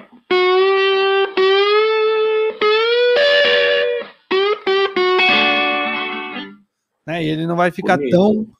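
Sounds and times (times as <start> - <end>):
electric guitar played through a high-gain pedal: 0.0 - 6.6
speech: 7.2 - 8.5.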